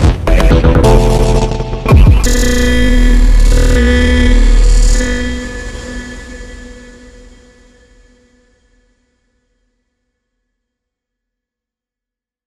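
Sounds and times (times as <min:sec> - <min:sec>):
dubstep sound effects: 0:00.0 - 0:07.1.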